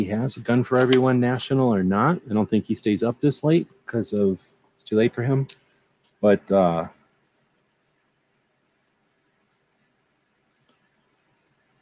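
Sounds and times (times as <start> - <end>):
speech: 0.0 - 7.0
pen scratching on paper while writing notes by hand: 6.8 - 11.7.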